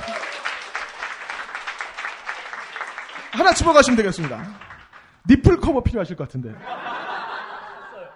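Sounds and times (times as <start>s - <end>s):
crowd clapping: 0.0s - 5.3s
speech: 3.3s - 6.8s
laughter: 6.6s - 8.1s.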